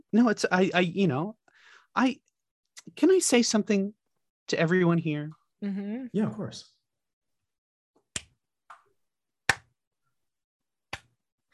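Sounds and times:
speech: 0.1s - 6.8s
slow hand claps: 9.5s - 9.7s, 10.9s - 11.2s.

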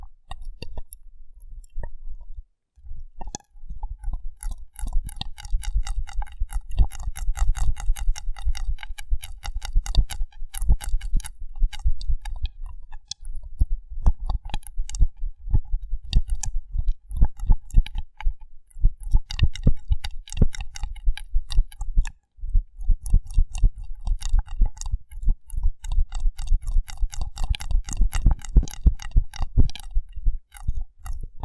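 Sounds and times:
wet sticky clicks and crackles: 3.2s - 13.2s, 14.3s - 15.0s, 16.0s - 18.4s, 19.0s - 22.2s, 22.8s - 31.3s.

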